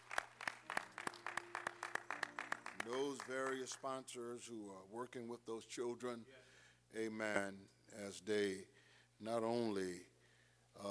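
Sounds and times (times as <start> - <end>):
church audience clapping for a choir and young people: 0.0 - 4.0
speech: 2.8 - 10.1.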